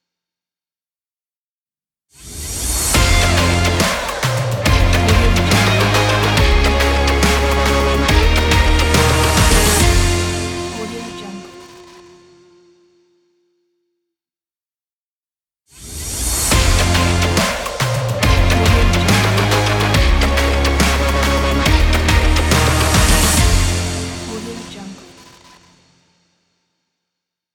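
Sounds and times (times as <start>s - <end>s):
sports intro music: 3.0s - 11.6s, 16.5s - 25.4s.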